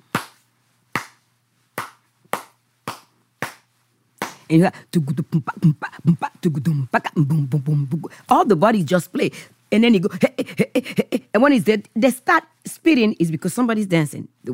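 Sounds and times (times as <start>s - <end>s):
hand claps beating out a drum rhythm: 0.1s - 4.5s
voice rhythmic vocalizing: 4.2s - 11.9s
speech: 4.5s - 14.5s.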